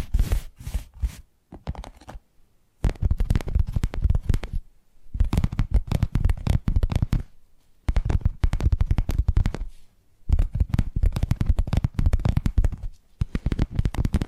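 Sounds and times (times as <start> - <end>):
quick tapping with low thud: 2.8 - 4.6, 5.2 - 7.3, 7.9 - 9.7, 10.3 - 14.2.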